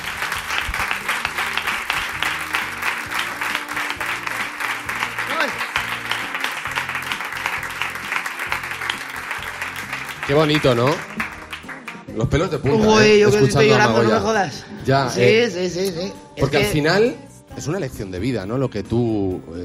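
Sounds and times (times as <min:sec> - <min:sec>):
audience applause: 0:00.0 - 0:12.1
speech: 0:10.3 - 0:11.1, 0:12.2 - 0:19.6.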